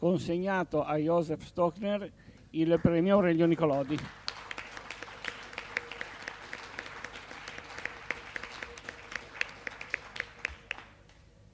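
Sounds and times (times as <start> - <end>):
speech: 0.0 - 4.2
audience applause: 3.6 - 11.0.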